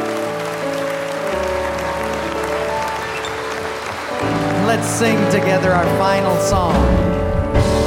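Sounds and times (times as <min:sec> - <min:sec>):
audience applause: 0:00.0 - 0:06.4
speech: 0:04.8 - 0:07.7.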